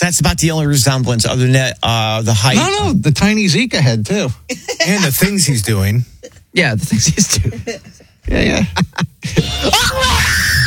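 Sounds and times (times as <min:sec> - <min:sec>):
speech: 0:00.1 - 0:10.6
man screaming: 0:09.3 - 0:10.6.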